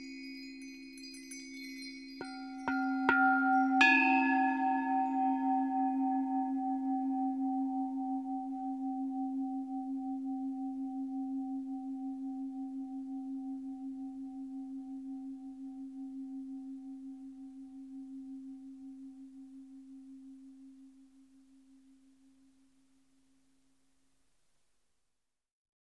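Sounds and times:
bells: 0:00.0 - 0:20.2
gongs: 0:02.2 - 0:21.2.

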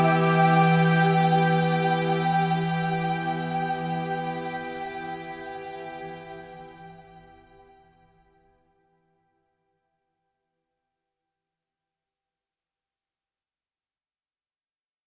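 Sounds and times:
heartache ambient music: 0:00.0 - 0:07.9.

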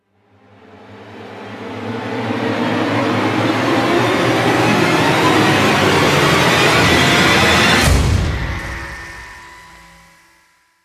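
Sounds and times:
rising sound: 0:01.6 - 0:10.2.

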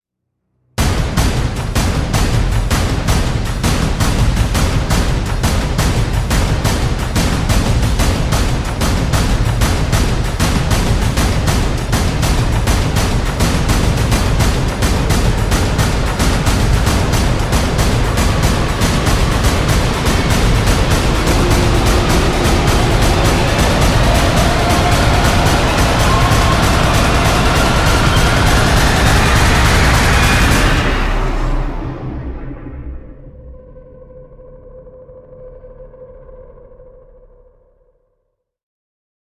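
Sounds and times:
drums: 0:00.8 - 0:32.0.

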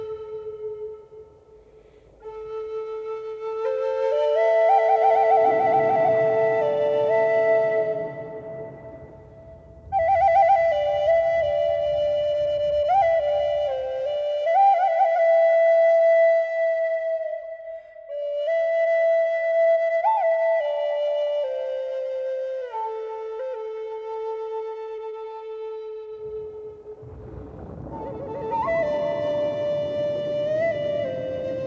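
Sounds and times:
Native American flutes: 0:00.0 - 0:31.6
thunder on a warm summer evening: 0:03.7 - 0:15.4, 0:26.2 - 0:31.6.

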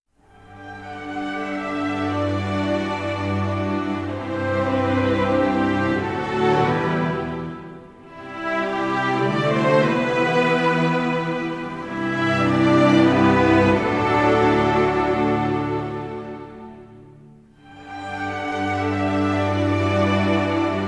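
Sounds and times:
orchestral music: 0:00.2 - 0:20.8.

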